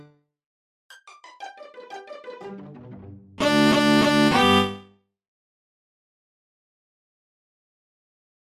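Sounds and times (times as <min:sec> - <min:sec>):
string trio playing a minuet: 0:01.2 - 0:04.8.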